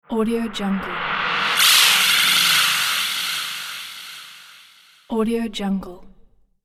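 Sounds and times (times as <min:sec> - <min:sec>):
paranormal mystery sound element: 0:00.0 - 0:05.0.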